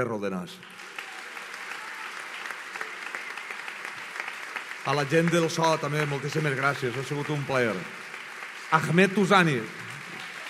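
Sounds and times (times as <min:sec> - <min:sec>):
speech: 0:00.0 - 0:01.0, 0:04.8 - 0:08.0, 0:08.7 - 0:09.8
audience applause: 0:00.6 - 0:10.4.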